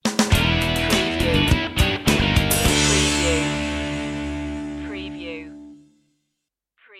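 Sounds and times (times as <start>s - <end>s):
funk rock sting: 0.2s - 4.8s.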